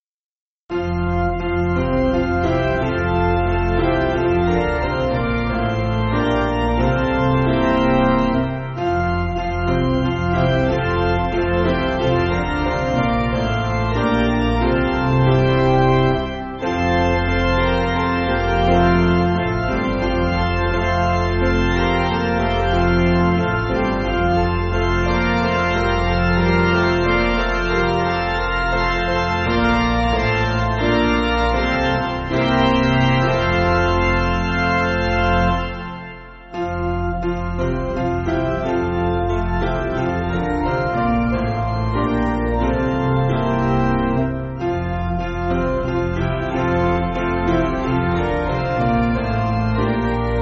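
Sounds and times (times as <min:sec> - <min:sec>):
piano piece: 0:00.7 - 0:50.4.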